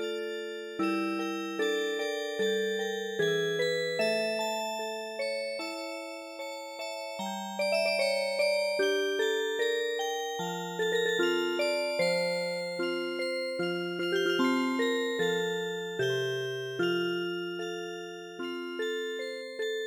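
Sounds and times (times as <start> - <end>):
music box melody: 0.0 - 19.8.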